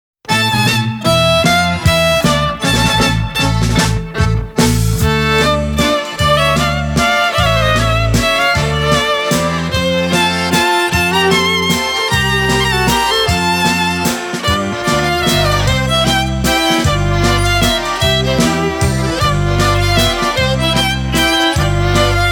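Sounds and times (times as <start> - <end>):
Polish kujawiak folk dance music: 0.2 - 22.3.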